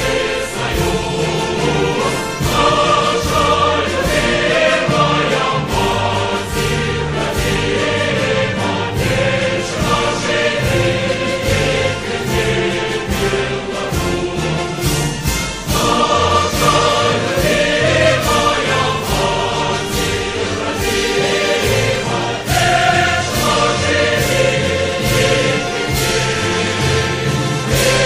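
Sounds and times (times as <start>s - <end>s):
national anthem with sung lyrics: 0.0s - 28.0s.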